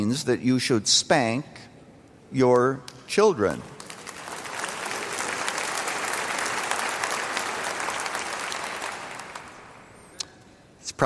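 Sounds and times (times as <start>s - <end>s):
speech: 0.0s - 1.7s, 2.3s - 3.8s
audience clapping: 3.6s - 10.1s.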